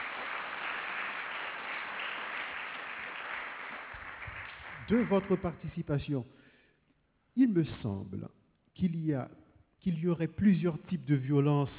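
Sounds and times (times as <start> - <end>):
audience applause: 0.0 - 5.5
speech: 4.9 - 6.4, 7.4 - 11.7.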